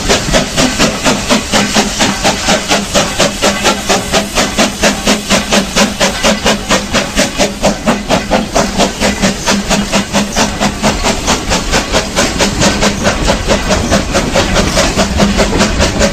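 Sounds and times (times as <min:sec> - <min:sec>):
steam locomotive: 0:00.0 - 0:16.1.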